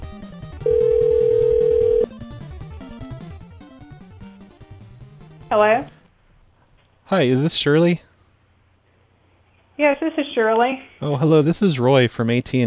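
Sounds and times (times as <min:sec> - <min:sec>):
music: 0:00.0 - 0:06.0
telephone busy tone: 0:00.6 - 0:02.1
speech: 0:05.5 - 0:06.0, 0:07.1 - 0:08.1, 0:09.8 - 0:12.6.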